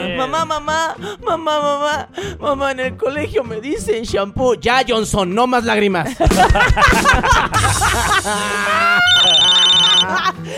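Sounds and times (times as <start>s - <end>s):
speech: 0.2s - 10.5s
laughter: 6.0s - 10.5s
telephone ringing with a steady electronic tone: 9.1s - 10.1s.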